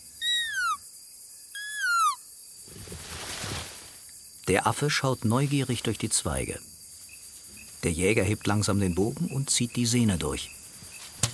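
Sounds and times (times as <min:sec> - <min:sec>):
whistle blown through a leaf: 0:00.0 - 0:00.8, 0:01.6 - 0:02.2
soft rustling hiss: 0:02.6 - 0:04.1
speech: 0:04.5 - 0:06.7, 0:07.8 - 0:10.6.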